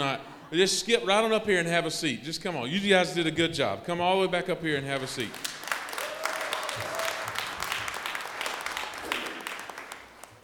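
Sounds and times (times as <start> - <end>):
speech: 0.0 - 5.5
crowd applauding: 5.0 - 10.4.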